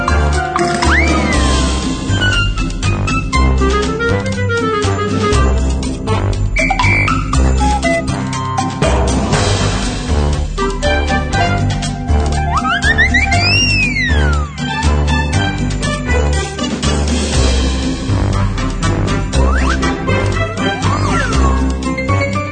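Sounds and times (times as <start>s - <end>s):
playful brave Christmas music score: 0.0s - 22.5s
ornament and toy sound effects: 12.5s - 14.6s.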